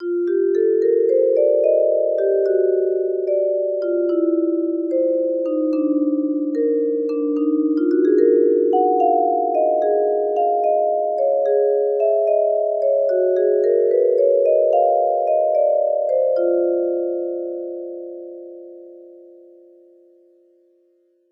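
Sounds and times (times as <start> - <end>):
percussion: 0.0 - 20.2.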